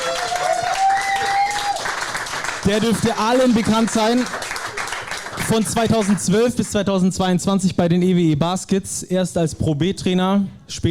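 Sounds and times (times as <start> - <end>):
audience applause greeting a former basketball coach at a live event: 0.0 - 6.2
speech: 2.6 - 4.4, 5.4 - 10.9.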